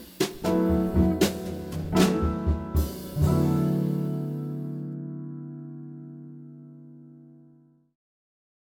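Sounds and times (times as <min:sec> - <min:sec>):
bass: 0:00.4 - 0:07.1
mixolydian mode major chord accompaniment: 0:00.4 - 0:07.9.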